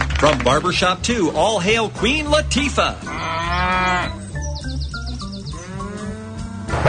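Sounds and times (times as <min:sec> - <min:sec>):
speech: 0:00.2 - 0:03.2
bison bellowing: 0:02.4 - 0:06.8.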